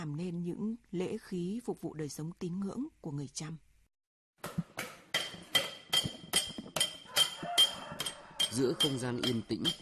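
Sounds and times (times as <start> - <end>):
speech: 0.0 - 3.7, 8.5 - 9.8
small hammer tapping on silver: 5.2 - 9.8.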